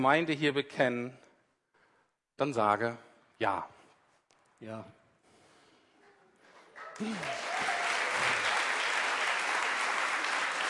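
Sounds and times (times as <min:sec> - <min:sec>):
speech: 0:00.0 - 0:01.2, 0:02.4 - 0:03.8, 0:04.6 - 0:05.0, 0:07.0 - 0:07.6
audience applause: 0:06.8 - 0:10.6.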